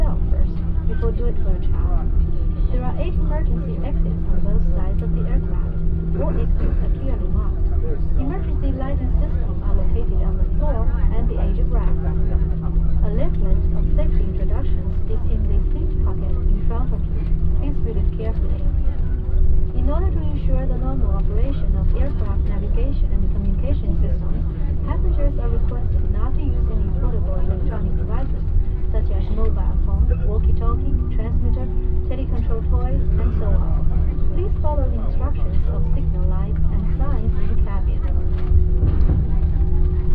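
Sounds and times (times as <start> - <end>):
filtered airplane takeoff in China: 0.0 - 40.1.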